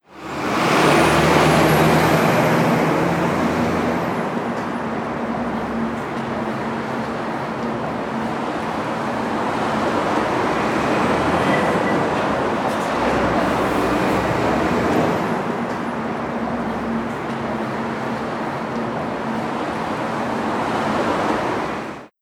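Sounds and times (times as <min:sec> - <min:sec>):
heavy traffic in New York City: 0:00.0 - 0:22.1.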